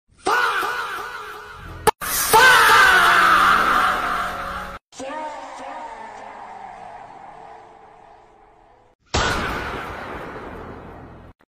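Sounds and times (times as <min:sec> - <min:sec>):
slowed faaaaaah shout: 0:00.2 - 0:08.9.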